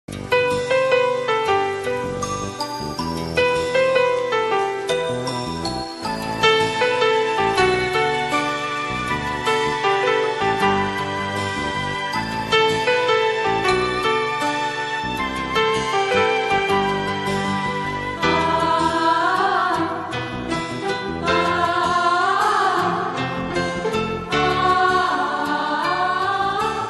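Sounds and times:
romantic instrumental ringtone: 0:00.1 - 0:26.8.

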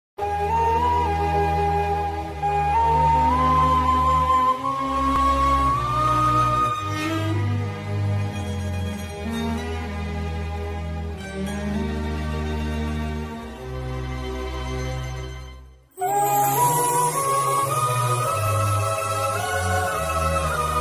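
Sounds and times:
Tamil film background music: 0:00.2 - 0:20.8.

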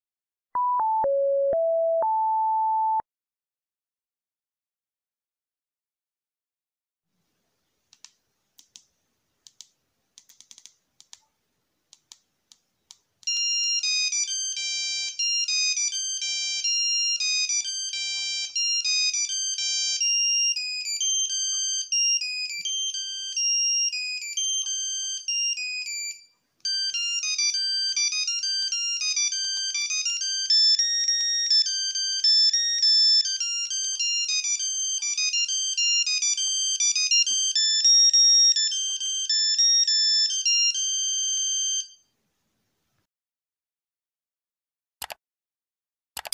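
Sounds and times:
intro background music played on Nokia Composer: 0:00.6 - 0:03.0, 0:13.3 - 0:42.0.

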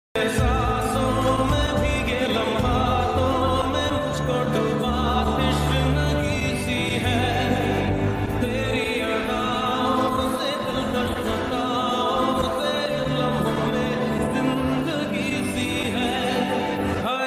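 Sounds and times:
romantic ringtone: 0:00.2 - 0:17.1.

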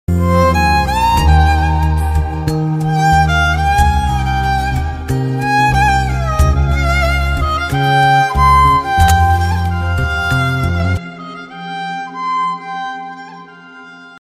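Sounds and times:
instrumental background ringtone music: 0:00.2 - 0:11.0.

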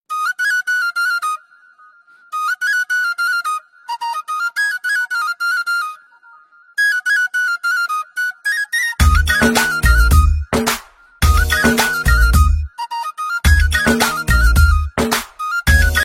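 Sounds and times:
bansuri flute ringtone: 0:00.1 - 0:16.0.

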